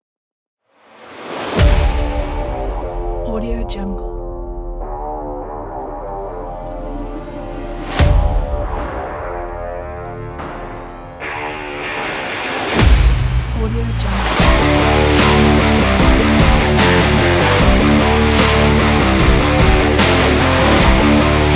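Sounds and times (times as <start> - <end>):
epic rock trailer music: 1.0 - 21.5.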